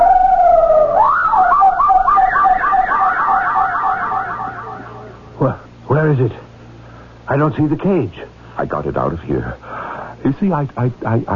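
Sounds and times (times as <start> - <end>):
parrot mimicking a siren: 0.0 - 5.3
speech: 7.4 - 11.3.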